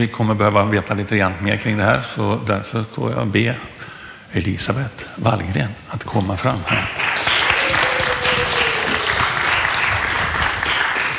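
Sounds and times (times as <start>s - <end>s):
speech: 0.0s - 7.1s
audience applause: 6.7s - 11.1s.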